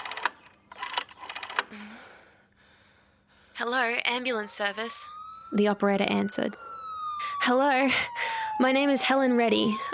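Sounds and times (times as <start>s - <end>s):
rotary telephone dial turning: 0.0s - 1.7s
speech: 3.6s - 6.7s, 7.4s - 9.9s.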